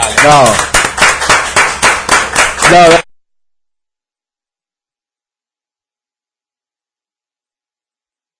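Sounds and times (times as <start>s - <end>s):
round of applause: 0.0s - 3.0s
speech: 0.2s - 0.7s, 2.7s - 3.0s.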